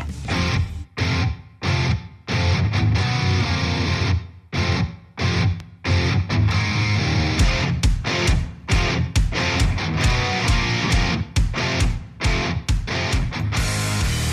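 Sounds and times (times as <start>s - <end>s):
rock track with distorted guitars and driving drums: 0.0s - 14.3s.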